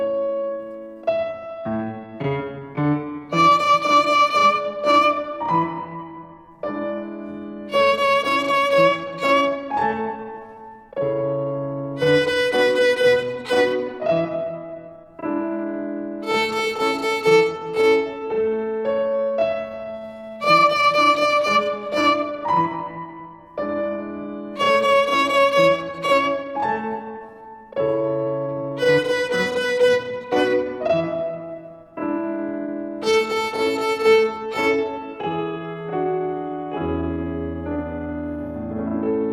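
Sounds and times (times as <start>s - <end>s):
bowed violin rhythm with three fingers: 0.2s - 39.2s.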